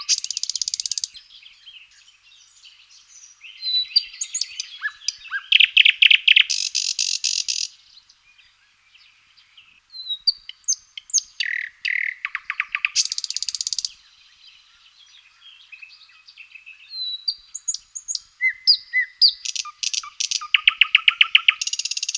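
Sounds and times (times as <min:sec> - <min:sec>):
thrush nightingale singing: 0:00.0 - 0:22.1.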